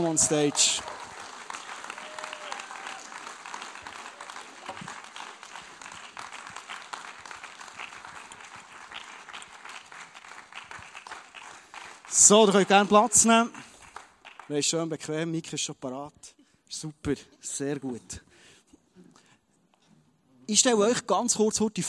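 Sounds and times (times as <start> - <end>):
speech: 0.0 - 1.0, 12.3 - 13.7, 14.5 - 18.3, 20.5 - 21.8
audience applause: 0.0 - 14.5.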